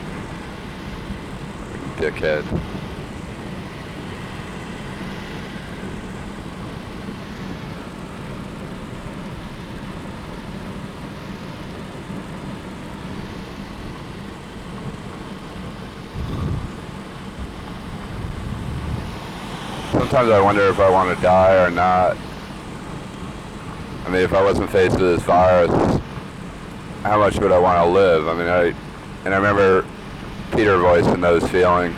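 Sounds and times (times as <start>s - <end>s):
low engine rumble: 0.0s - 31.9s
road noise of car driving in rain: 0.0s - 31.9s
speech: 2.0s - 2.9s, 20.2s - 22.3s, 24.1s - 26.0s, 27.0s - 29.9s, 30.6s - 31.9s.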